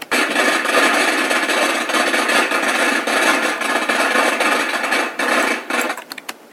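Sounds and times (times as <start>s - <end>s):
firecrackers being set off: 0.0s - 6.1s.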